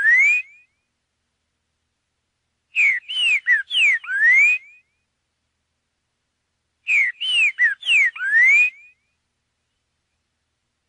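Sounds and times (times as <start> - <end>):
green-winged saltator song: 0.0 - 0.8, 2.7 - 5.0, 6.9 - 9.2.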